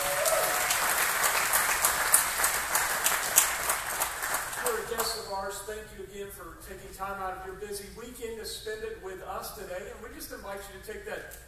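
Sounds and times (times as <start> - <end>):
congregation clapping to welcome guests at a church service: 0.0 - 5.3
speech: 5.5 - 11.4.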